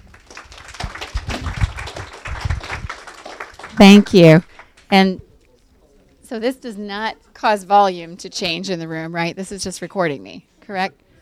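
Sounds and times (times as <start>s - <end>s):
audience applause: 0.0s - 4.8s
speech: 3.8s - 5.2s, 6.3s - 11.0s.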